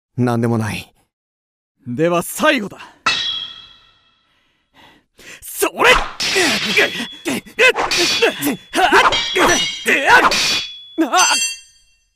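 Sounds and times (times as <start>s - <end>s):
speech: 0.2s - 0.9s, 1.8s - 3.0s, 5.2s - 11.6s
sword knocked from a hand in a staging of Hamlet: 3.1s - 4.2s, 5.8s - 12.0s.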